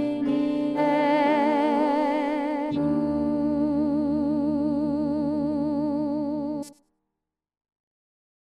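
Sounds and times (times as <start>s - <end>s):
soprano singing: 0.0s - 6.8s.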